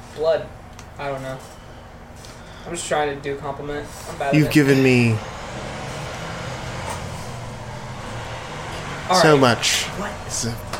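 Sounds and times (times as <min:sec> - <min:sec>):
speech: 0:00.2 - 0:01.6, 0:02.6 - 0:05.7, 0:09.1 - 0:10.7
traffic ambience of passing vehicles while leaving a gas station: 0:04.4 - 0:10.7.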